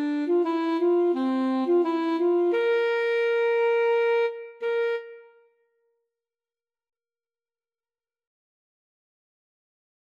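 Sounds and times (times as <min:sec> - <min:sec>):
alto saxophone playing: 0:00.0 - 0:05.5.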